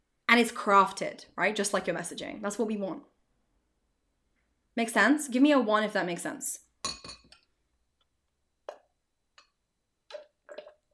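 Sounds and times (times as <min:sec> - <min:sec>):
speech: 0:00.4 - 0:03.1, 0:04.8 - 0:06.6
glass clinking while drinking water: 0:06.8 - 0:07.4.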